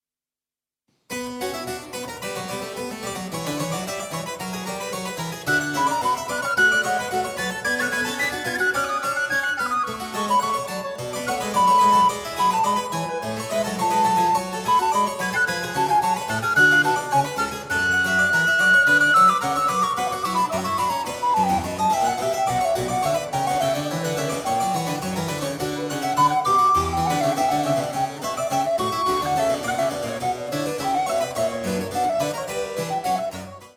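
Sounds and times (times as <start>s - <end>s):
allegro classical piece: 1.1s - 33.7s.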